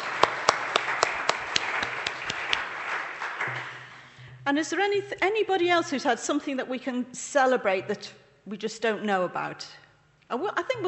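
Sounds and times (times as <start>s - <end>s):
crowd applauding: 0.0s - 4.2s
speech: 4.5s - 10.8s.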